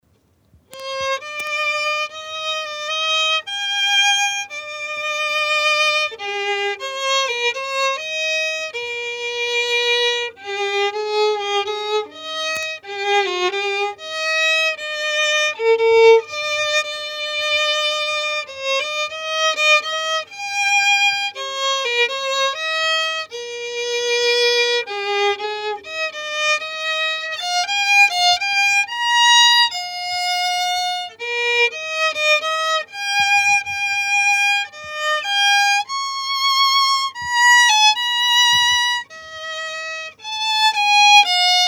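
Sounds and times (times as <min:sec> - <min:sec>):
violin: 0:00.1 - 0:41.6.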